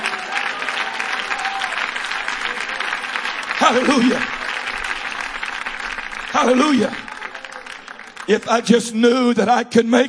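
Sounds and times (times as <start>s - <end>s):
audience clapping hands: 0.0s - 9.4s
speech: 3.7s - 4.4s, 6.3s - 7.0s, 8.3s - 10.0s.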